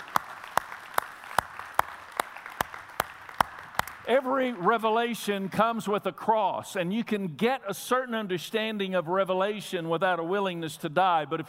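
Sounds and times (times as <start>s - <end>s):
audience clapping: 0.0s - 5.8s
speech: 4.1s - 11.4s.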